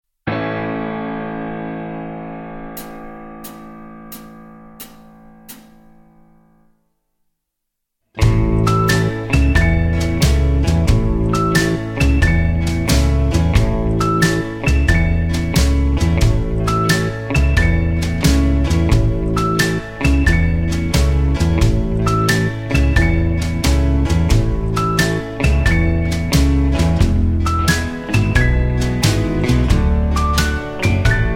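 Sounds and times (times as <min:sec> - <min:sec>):
backing track without backing vocals: 0:02.8 - 0:06.1, 0:08.2 - 0:31.3.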